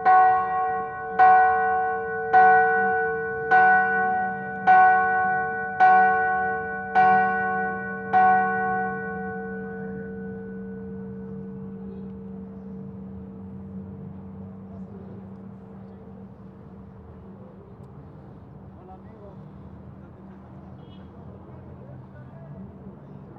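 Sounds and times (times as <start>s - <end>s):
bells of Cusco Cathedral striking: 0.0s - 14.6s.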